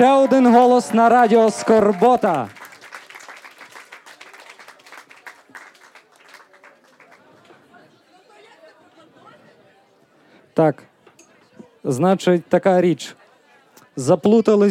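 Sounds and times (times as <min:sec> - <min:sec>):
speech: 0:00.0 - 0:02.6, 0:10.6 - 0:10.9, 0:11.8 - 0:13.2, 0:14.0 - 0:14.6
applause: 0:00.0 - 0:07.6
crowd murmur: 0:00.0 - 0:14.6.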